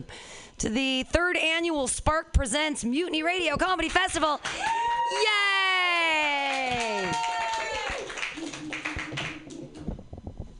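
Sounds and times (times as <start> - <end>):
speech: 0.0 - 5.6
audience clapping: 6.2 - 9.9.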